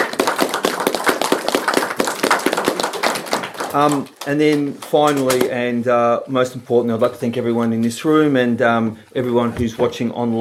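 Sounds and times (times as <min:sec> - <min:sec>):
audience round of applause: 0:00.0 - 0:05.4
speech: 0:03.7 - 0:10.4.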